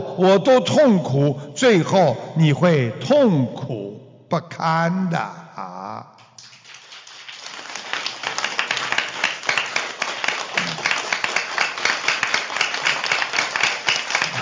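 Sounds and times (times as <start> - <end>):
speech: 0.2 - 5.7
applause: 6.2 - 14.4.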